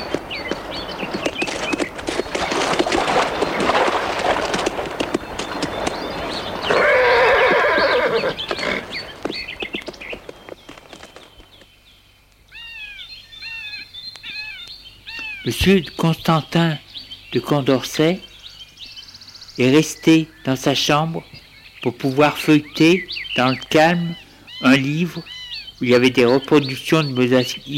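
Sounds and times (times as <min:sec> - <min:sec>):
horse hooves of a horse-drawn calèche carriage setting off: 0:00.0 - 0:11.8
birds chirping: 0:00.0 - 0:27.7
speech: 0:15.6 - 0:18.3, 0:19.6 - 0:27.7.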